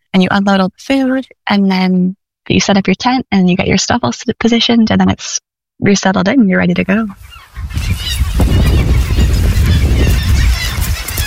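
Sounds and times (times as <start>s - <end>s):
speech: 0.2s - 8.9s
hundreds of seabirds calling at colony: 6.7s - 11.2s.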